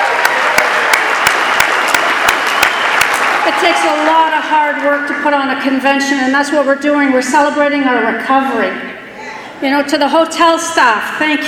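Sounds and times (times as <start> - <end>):
audience applause: 0.0 - 5.7
speech: 3.7 - 8.9, 9.6 - 11.4.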